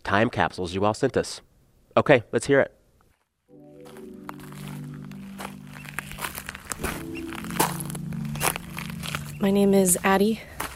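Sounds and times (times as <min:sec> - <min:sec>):
speech: 0:00.1 - 0:02.8, 0:09.4 - 0:10.5
footsteps crunching outdoors on Portland Island near Juneau Alaska: 0:03.1 - 0:10.7.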